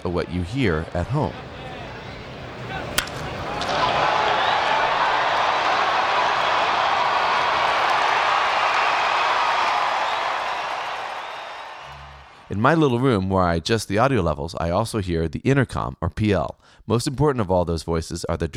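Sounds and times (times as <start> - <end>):
speech: 0.0 - 1.5, 12.6 - 18.5
stadium crowd roar: 0.6 - 12.4
bat crack: 0.7 - 4.4.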